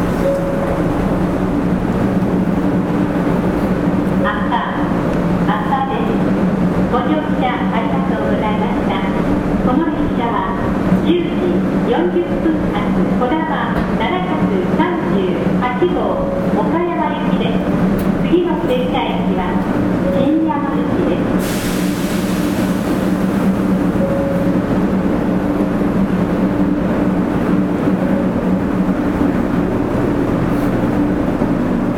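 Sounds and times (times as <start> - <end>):
Shinkansen 500 series train running rumble and hum: 0.0 - 31.9
people talking: 4.2 - 6.3, 6.9 - 21.4.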